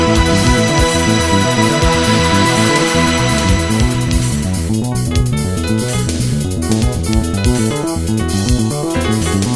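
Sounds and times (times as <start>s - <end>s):
shaker: 0.2s - 9.5s.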